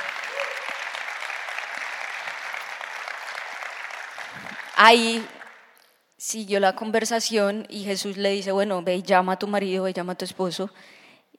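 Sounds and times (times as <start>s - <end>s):
audience applause: 0.0s - 5.7s
speech: 4.8s - 5.4s, 6.2s - 11.0s.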